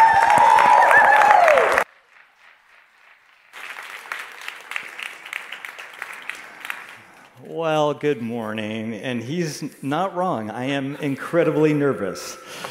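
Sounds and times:
massive round of applause: 0:00.0 - 0:07.4
speech: 0:07.6 - 0:12.6.

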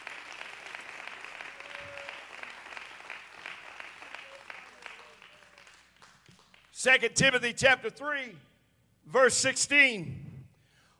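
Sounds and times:
audience clapping: 0:00.0 - 0:07.0
speech: 0:06.8 - 0:08.5, 0:09.1 - 0:10.2.

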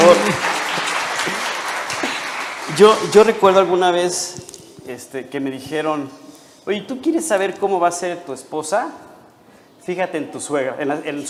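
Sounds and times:
audience applause: 0:00.0 - 0:03.8
speech: 0:00.2 - 0:00.5, 0:02.8 - 0:09.1, 0:09.8 - 0:11.2.

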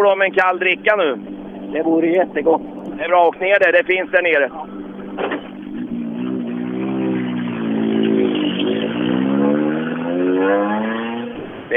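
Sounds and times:
speech: 0:00.0 - 0:05.4
car engine without a muffler revving: 0:00.0 - 0:11.7.

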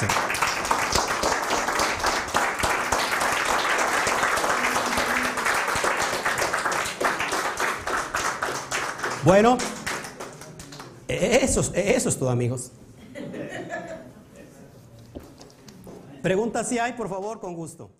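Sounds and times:
audience applause: 0:00.0 - 0:11.0
speech: 0:09.2 - 0:09.8, 0:11.1 - 0:12.8, 0:16.2 - 0:17.9
laughter: 0:13.0 - 0:14.8.

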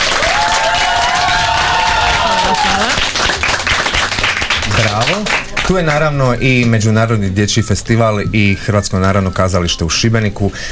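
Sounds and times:
studio audience applause and cheering at a radio show recording: 0:00.0 - 0:06.1
speech: 0:05.7 - 0:10.7
wavering whistle-like tone: 0:07.5 - 0:10.2.

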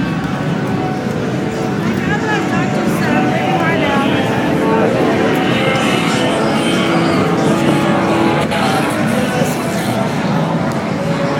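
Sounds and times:
crowd murmur on 6th Street during SXSW: 0:00.0 - 0:11.3
passing traffic: 0:00.0 - 0:11.3.

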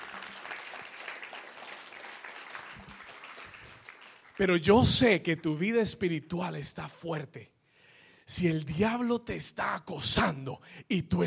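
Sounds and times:
loud audience applause: 0:00.0 - 0:04.6
speech: 0:04.4 - 0:07.6, 0:08.3 - 0:11.2.

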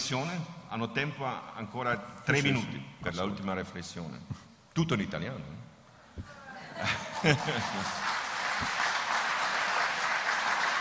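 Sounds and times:
speech: 0:00.1 - 0:05.6, 0:06.2 - 0:08.8
laughter: 0:06.5 - 0:08.3
audience applause: 0:06.8 - 0:10.7.

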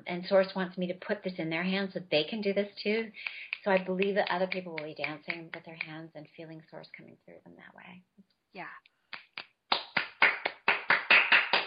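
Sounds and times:
speech: 0:00.0 - 0:08.9
sharp hand claps: 0:03.2 - 0:06.0, 0:09.1 - 0:11.6.

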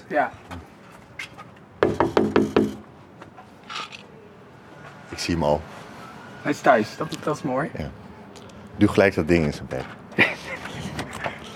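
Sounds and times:
speech: 0:00.1 - 0:00.6, 0:05.2 - 0:05.7, 0:06.4 - 0:08.0, 0:08.8 - 0:10.4
knocking on a front door: 0:01.8 - 0:02.9
laughter: 0:10.1 - 0:11.5.

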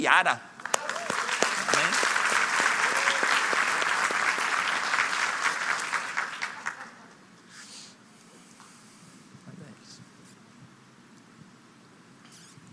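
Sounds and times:
speech: 0:00.0 - 0:00.5
audience applauding: 0:00.6 - 0:07.2.

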